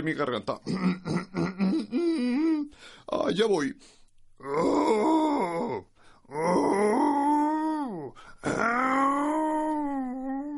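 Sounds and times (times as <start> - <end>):
speech: 0.0 - 2.0, 2.6 - 5.2
human voice imitating a lion's roar: 4.4 - 10.5.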